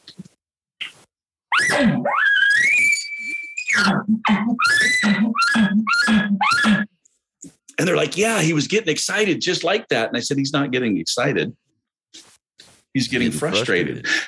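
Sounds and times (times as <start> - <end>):
speech: 1.8 - 2.2, 3.8 - 6.8, 7.8 - 12.2, 13.0 - 14.2
voice imitating a bull elk bugle: 3.8 - 6.9.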